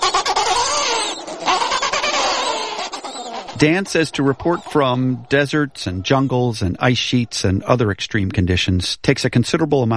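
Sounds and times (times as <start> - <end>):
penguins squawking in a rookery: 0.0 - 6.5
speech: 3.6 - 9.9.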